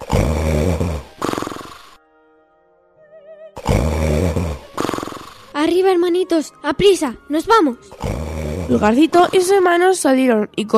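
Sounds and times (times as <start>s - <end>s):
loud rough exaggerated snoring with a deep rattling rumble: 0.0s - 2.0s, 3.6s - 5.6s, 7.9s - 9.6s
speech: 5.7s - 10.7s.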